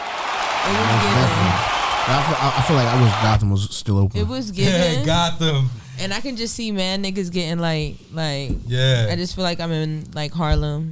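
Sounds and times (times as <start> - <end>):
applause: 0.0 - 3.4
laughter: 0.6 - 3.4, 4.6 - 6.1
speech: 0.7 - 10.9.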